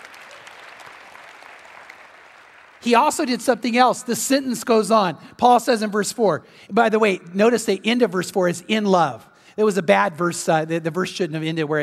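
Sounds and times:
audience clapping: 0.0 - 3.5
speech: 2.8 - 11.8.

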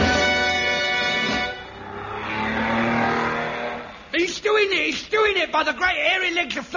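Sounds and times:
racing car engine roaring during a race: 0.2 - 4.2
speech: 4.9 - 6.7.

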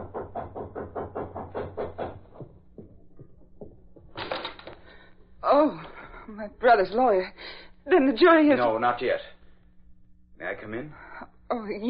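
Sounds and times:
knocking on apartment door: 0.0 - 4.2
speech: 6.4 - 9.3, 10.6 - 11.8.

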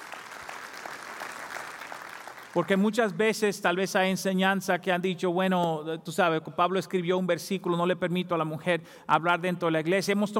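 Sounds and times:
audience applause: 0.0 - 2.8
speech: 2.6 - 10.3.

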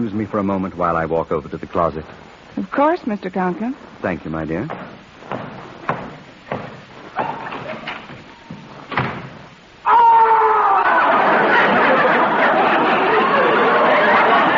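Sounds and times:
speech: 0.0 - 4.9
heavy thuds and knocks of a hammer: 4.6 - 9.6
laughter: 10.6 - 14.5.

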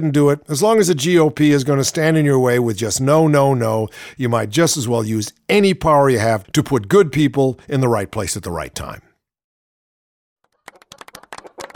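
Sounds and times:
speech: 0.0 - 9.1
applause from a small group: 10.5 - 11.7.

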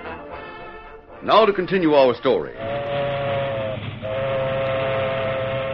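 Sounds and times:
locomotive and caboose moving west along railroad tracks: 1.3 - 5.7
speech: 1.4 - 2.7.

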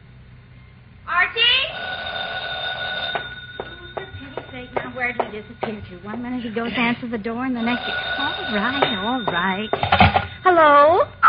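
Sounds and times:
low noise: 0.0 - 11.2
telephone ringing: 1.6 - 11.0
speech: 5.0 - 11.2.

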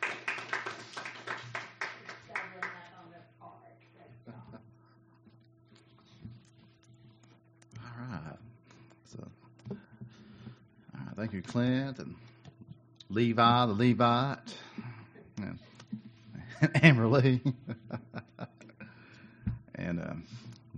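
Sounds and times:
audience clapping: 0.0 - 3.0
laughter: 4.3 - 4.7, 16.4 - 18.9
speech: 9.1 - 9.4, 11.2 - 12.3, 13.1 - 14.6, 16.6 - 17.6.

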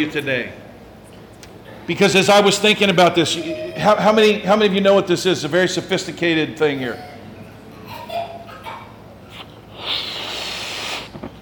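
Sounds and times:
speech: 0.0 - 0.6, 1.9 - 7.1
balloon being blown up: 9.3 - 11.4.

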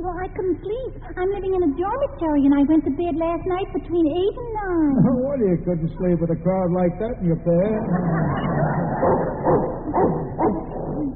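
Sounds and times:
speech: 0.3 - 10.2
laughter: 5.0 - 11.1
dog barking viciously: 8.9 - 11.1.

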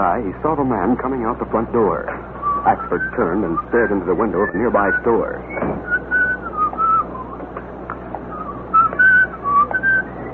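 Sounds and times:
speech: 0.0 - 6.0
low steady hum: 0.0 - 10.3
man whistling a short off-key tune: 2.4 - 7.5, 8.2 - 10.3.

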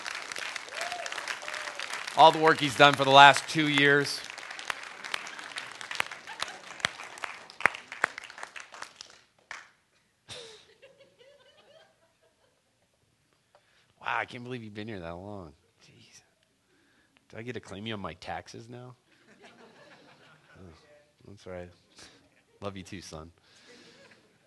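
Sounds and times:
audience applause: 0.0 - 9.6
speech: 2.2 - 4.3, 14.3 - 15.6, 17.3 - 19.0, 20.6 - 23.6
laughter: 5.2 - 7.1, 10.3 - 12.6, 19.2 - 20.7.

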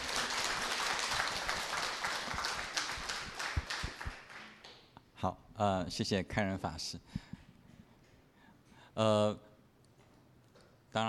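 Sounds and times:
warm applause welcoming a speaker: 0.0 - 4.7
speech: 5.2 - 7.2, 9.0 - 9.5.

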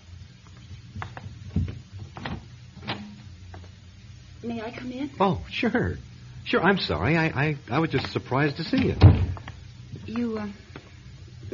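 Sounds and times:
door opening: 1.5 - 3.1, 8.7 - 9.4
speech: 4.4 - 9.2, 10.1 - 10.9.

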